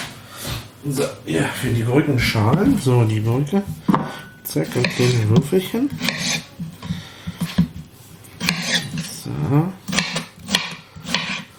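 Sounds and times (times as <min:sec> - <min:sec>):
speech: 0:00.8 - 0:06.4, 0:09.5 - 0:09.8
chopping on a new cutting board: 0:04.7 - 0:07.8, 0:08.4 - 0:08.9, 0:09.9 - 0:11.5.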